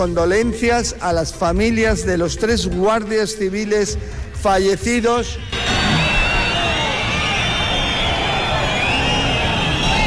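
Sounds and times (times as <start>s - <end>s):
speech: 0.0s - 5.6s
crowd booing: 5.5s - 10.0s
shrill whistles: 5.5s - 10.0s.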